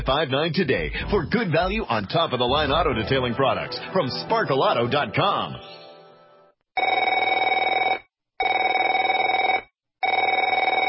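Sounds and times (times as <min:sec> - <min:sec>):
speech: 0:00.0 - 0:05.8
telephone bell ringing: 0:06.8 - 0:10.8.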